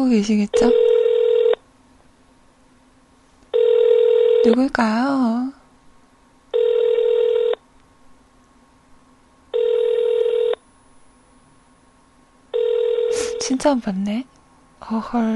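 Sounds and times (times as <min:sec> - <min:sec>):
speech: 0:00.0 - 0:00.9, 0:04.4 - 0:05.6, 0:13.6 - 0:15.3
telephone ringing unanswered: 0:00.6 - 0:01.6, 0:03.5 - 0:04.6, 0:06.5 - 0:07.6, 0:09.5 - 0:10.6, 0:12.5 - 0:13.5.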